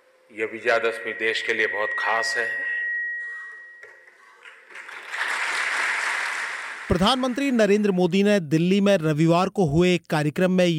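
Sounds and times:
speech: 0:00.3 - 0:02.7, 0:06.9 - 0:10.7
long applause at an event: 0:04.2 - 0:08.0.

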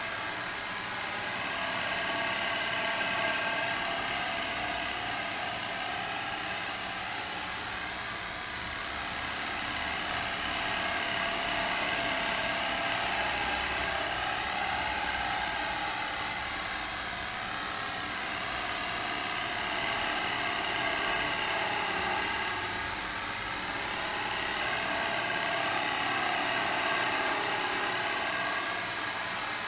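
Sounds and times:
projector running in Birmingham art gallery: 0:00.0 - 0:29.6.

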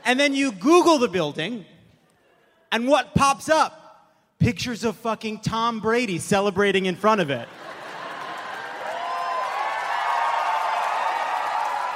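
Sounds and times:
speech: 0:00.1 - 0:01.7, 0:02.7 - 0:03.8, 0:04.4 - 0:07.8
audience cheering: 0:07.6 - 0:11.9.

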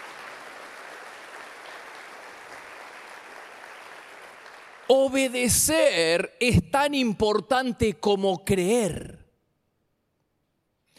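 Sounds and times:
audience applause: 0:00.0 - 0:05.4
speech: 0:04.9 - 0:09.2.

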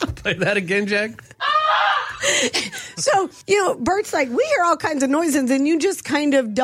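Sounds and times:
speech: 0:00.2 - 0:01.3, 0:02.3 - 0:06.6
goose screaming: 0:01.4 - 0:02.1.

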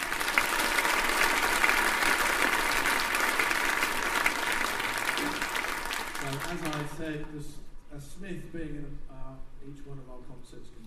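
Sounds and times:
audience applause: 0:00.0 - 0:07.3
speech: 0:06.4 - 0:10.8.

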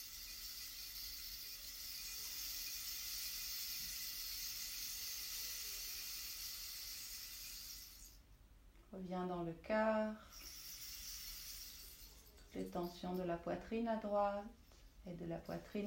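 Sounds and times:
rain stick: 0:00.0 - 0:08.2, 0:10.3 - 0:13.2
speech: 0:08.9 - 0:10.4, 0:12.6 - 0:15.8.

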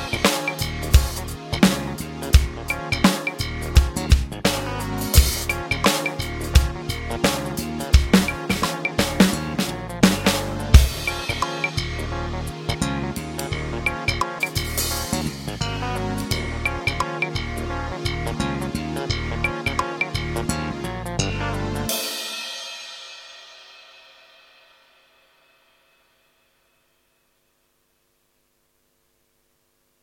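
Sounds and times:
slow funk groove on a Roland TD-12 drum kit: 0:00.0 - 0:23.9.

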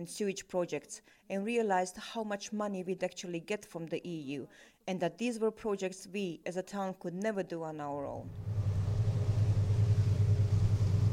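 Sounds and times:
speech: 0:00.0 - 0:08.7
car ferry engine rumble bound for the island of Hvar: 0:08.3 - 0:11.1.

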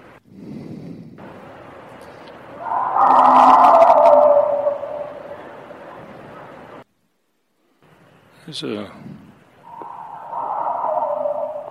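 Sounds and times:
unknown tight howl in the woods: 0:02.5 - 0:06.6, 0:09.7 - 0:11.6
speech: 0:08.5 - 0:09.2.

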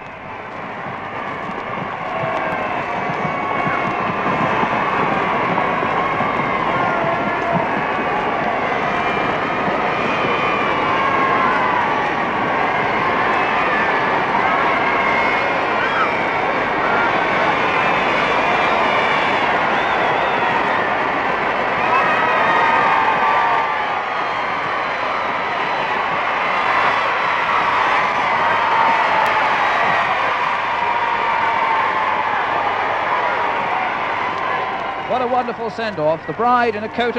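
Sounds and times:
crowds cheering a passing royal carriage: 0:00.0 - 0:37.1
speech: 0:35.4 - 0:37.1.

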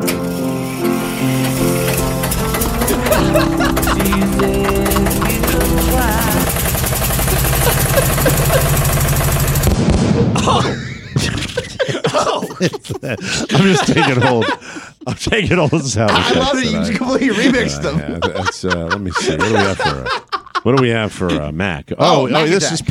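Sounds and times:
car engine starting: 0:00.1 - 0:09.7
laughter: 0:01.6 - 0:09.3, 0:10.4 - 0:22.8
speech: 0:12.6 - 0:22.8.

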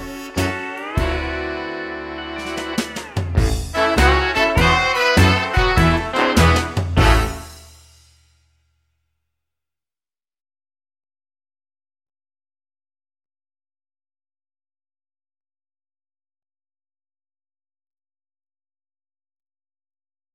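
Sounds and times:
backing track: 0:00.0 - 0:07.9.

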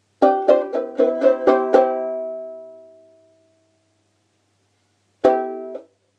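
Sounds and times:
banjolele: 0:00.0 - 0:03.6, 0:05.2 - 0:06.0.

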